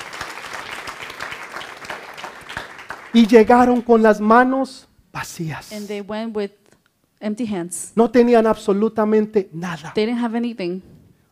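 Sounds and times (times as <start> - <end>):
crowd clapping: 0.0 - 4.1
speech: 3.1 - 6.6, 7.2 - 10.9.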